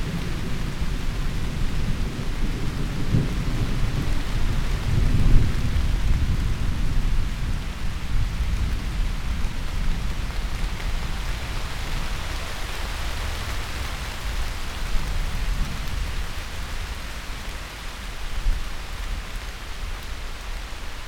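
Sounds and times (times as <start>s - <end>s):
thunder: 0.0s - 9.6s
rain: 0.0s - 21.0s
wind: 0.0s - 21.0s.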